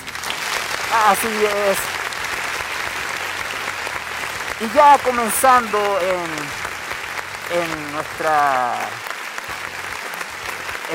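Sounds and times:
applause: 0.0s - 10.9s
speech: 0.9s - 1.9s, 4.6s - 6.6s, 7.5s - 9.1s.

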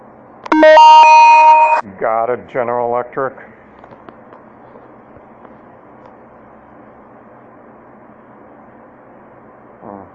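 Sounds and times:
programmable door alarm going off: 0.5s - 1.8s
speech: 2.0s - 3.6s.

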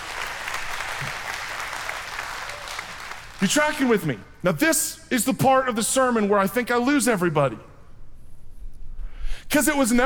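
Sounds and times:
audience applause: 0.0s - 3.4s
speech: 3.4s - 7.7s, 9.5s - 10.0s.

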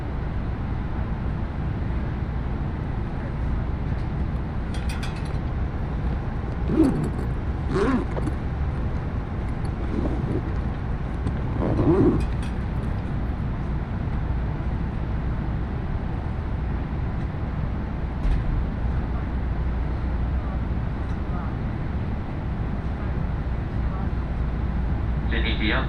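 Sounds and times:
faint hum: 0.0s - 25.8s
Iida Line train rumbling: 2.7s - 15.0s.

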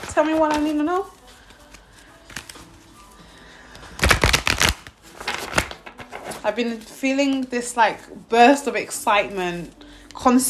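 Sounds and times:
goddess guidance oracle cards being shuffled: 0.0s - 3.1s, 3.8s - 7.5s
speech: 0.2s - 1.2s, 6.4s - 10.4s.

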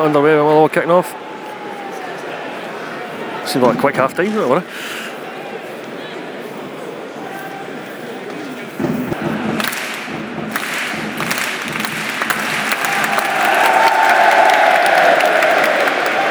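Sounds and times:
speech: 0.0s - 1.3s, 3.5s - 5.0s
football crowd chanting: 1.2s - 16.3s
drum thumps: 8.8s - 15.4s
football crowd clapping: 8.8s - 16.3s.

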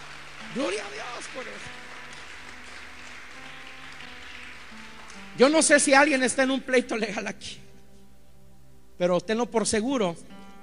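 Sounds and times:
loud audience applause: 0.0s - 5.5s
speech: 0.5s - 2.0s, 5.4s - 7.7s, 9.0s - 10.4s.

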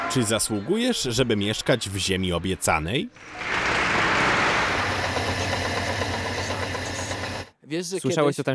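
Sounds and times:
speech: 0.1s - 3.7s, 7.7s - 8.5s
spinning mill machinery noise: 3.2s - 7.5s.

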